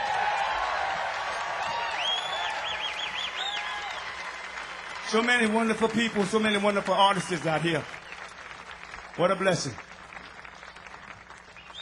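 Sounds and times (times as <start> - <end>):
audience applause: 0.0 - 11.8
speech: 5.1 - 8.0, 9.2 - 9.9.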